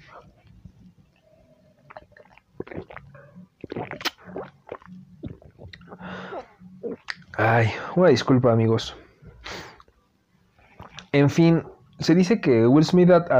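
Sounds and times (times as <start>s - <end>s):
sipping coffee: 1.8s - 7.3s
speech: 7.4s - 9.0s, 11.2s - 13.3s.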